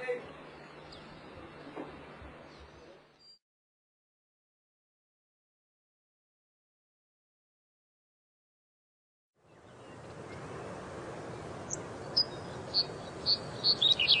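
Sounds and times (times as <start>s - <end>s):
birds: 0.0s - 3.4s, 9.4s - 14.1s.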